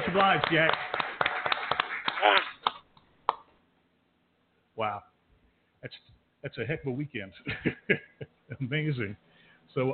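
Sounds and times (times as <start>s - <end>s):
audience applause: 0.0s - 2.8s
speech: 0.1s - 1.0s, 2.2s - 2.5s, 4.8s - 5.1s, 5.8s - 9.9s.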